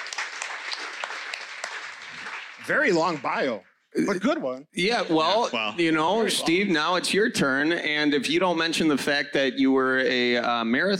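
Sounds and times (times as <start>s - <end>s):
audience applause at a panel-style talk: 0.0s - 3.6s
speech: 2.7s - 10.9s.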